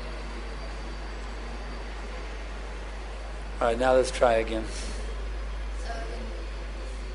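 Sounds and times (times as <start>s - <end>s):
train rolling past: 0.0s - 7.0s
speech: 3.6s - 5.0s.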